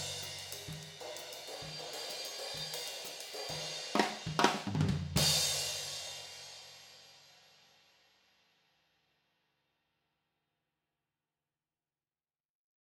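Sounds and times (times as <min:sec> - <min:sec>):
drums recorded with spaced figure-8 high-pass filtered overhead microphones: 0:00.0 - 0:08.7.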